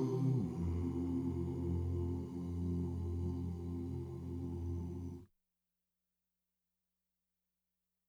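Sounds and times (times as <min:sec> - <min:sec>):
bass: 0:00.1 - 0:05.2.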